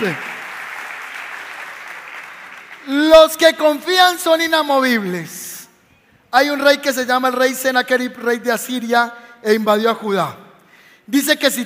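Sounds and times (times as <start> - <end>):
speech: 0.0 - 0.3, 2.8 - 5.4, 6.3 - 10.4, 11.1 - 11.6
audience applause: 0.0 - 2.9.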